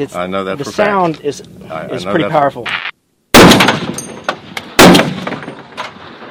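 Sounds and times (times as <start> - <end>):
speech: 0.0 - 2.9
.50 caliber rifle shots with muzzle brake: 3.3 - 5.8.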